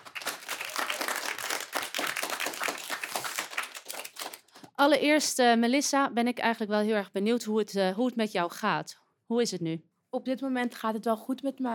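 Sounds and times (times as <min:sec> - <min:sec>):
studio audience applause at a talk show: 0:00.0 - 0:04.5
speech: 0:04.8 - 0:11.7.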